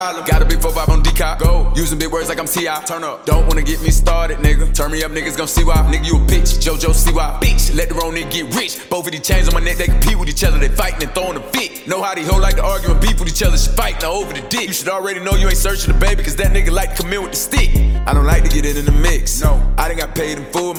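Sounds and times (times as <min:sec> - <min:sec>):
beatbox remix: 0:00.1 - 0:20.7.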